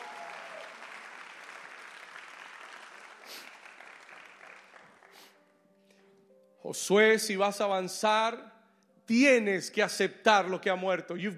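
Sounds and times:
audience applauding: 0:00.0 - 0:05.4
speech: 0:06.6 - 0:08.5, 0:09.1 - 0:11.3.

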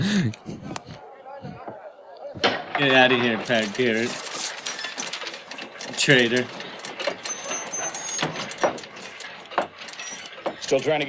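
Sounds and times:
laughter: 0:00.0 - 0:04.4
faulty newspaper printing machine clanking: 0:00.0 - 0:11.0
speech: 0:02.8 - 0:04.3, 0:06.0 - 0:06.6, 0:10.7 - 0:11.0.

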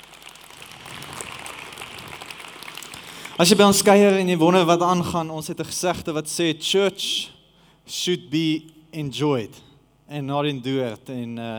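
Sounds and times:
audience applause for dancers: 0:00.0 - 0:03.6
speech: 0:03.4 - 0:11.5.

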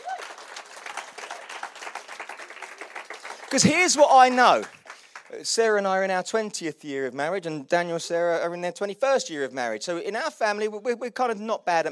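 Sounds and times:
audience round of applause: 0:00.0 - 0:05.4
speech: 0:03.5 - 0:11.9.

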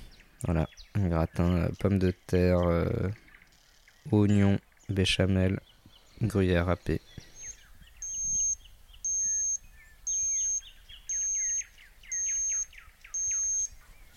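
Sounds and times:
birds chirping faintly: 0:00.0 - 0:14.1
speech: 0:00.4 - 0:03.2, 0:04.0 - 0:07.3
digital thermometer beeping: 0:07.5 - 0:13.7.

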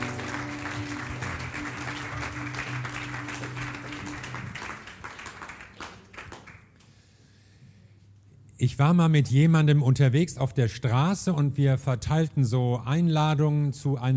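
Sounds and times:
audience applause: 0:00.0 - 0:06.8
speech: 0:08.6 - 0:14.1.

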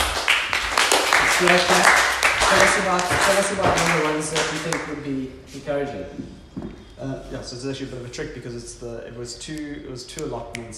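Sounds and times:
group clapping: 0:00.0 - 0:05.1
speech: 0:01.4 - 0:10.7.

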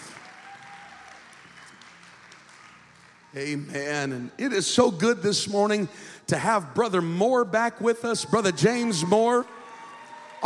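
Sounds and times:
church congregation applauding to welcome first-time guests: 0:00.0 - 0:04.2, 0:08.3 - 0:10.4
speech: 0:03.3 - 0:09.6.

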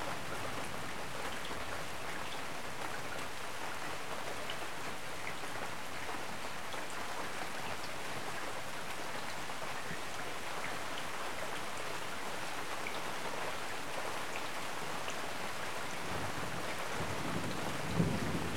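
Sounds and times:
rain falling steadily during a storm: 0:00.0 - 0:18.5.

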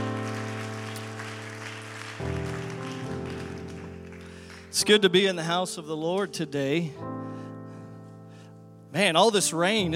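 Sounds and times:
crowd clapping: 0:00.0 - 0:05.2
organ or keyboard chords: 0:00.0 - 0:09.9
speech: 0:04.7 - 0:07.1, 0:08.9 - 0:09.9.

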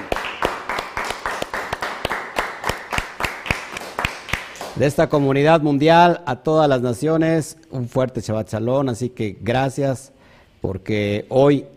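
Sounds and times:
loud applause: 0:00.0 - 0:04.8
speech: 0:04.8 - 0:11.7.

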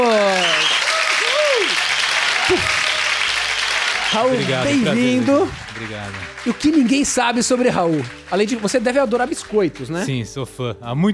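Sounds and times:
audience applause: 0:00.0 - 0:10.3
speech: 0:04.1 - 0:11.1.

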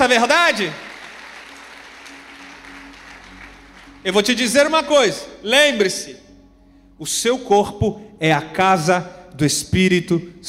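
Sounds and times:
speech: 0:00.0 - 0:00.9, 0:04.0 - 0:06.2, 0:07.0 - 0:10.4
audience applauding: 0:00.0 - 0:04.3.

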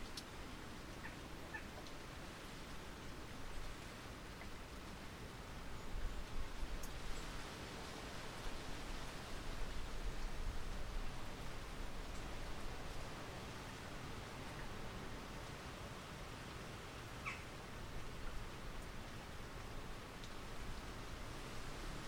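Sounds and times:
wind rustling through orchard trees: 0:00.0 - 0:22.0.

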